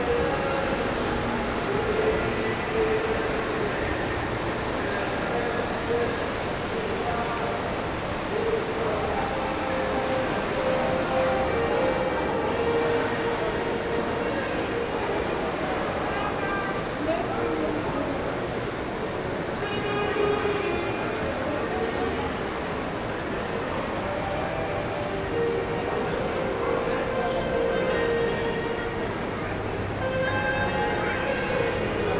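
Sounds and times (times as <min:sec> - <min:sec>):
shopping mall ambience: 0:00.0 - 0:32.1.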